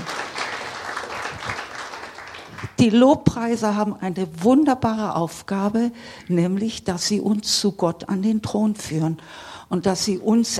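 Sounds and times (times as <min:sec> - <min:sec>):
audience applause: 0:00.0 - 0:02.8
speech: 0:02.8 - 0:10.5.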